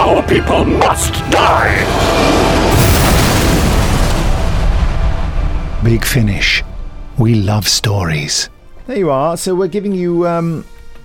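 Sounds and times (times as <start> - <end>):
speech: 0.2 - 2.8, 5.8 - 10.7
Silurian missile impact explosion in Doctor Who audio drama: 1.3 - 8.1.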